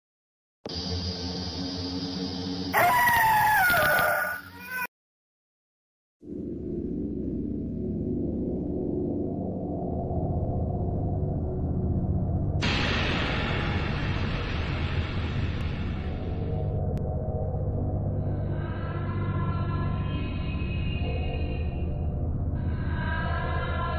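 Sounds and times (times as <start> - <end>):
scary horror sound effects: 0.7 - 4.5, 6.3 - 23.8
people screaming at the top of their lungs: 2.7 - 4.9.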